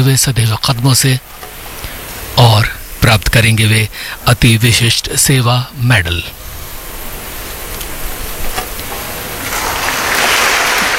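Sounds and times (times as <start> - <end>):
speech: 0.0 - 1.5, 2.4 - 6.4
applause: 9.4 - 10.9.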